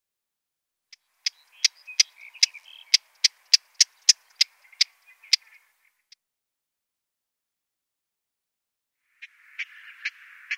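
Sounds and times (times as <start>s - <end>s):
Eastern olivaceous warbler giving dry ticking clicks: 0.9s - 6.2s, 9.2s - 10.5s.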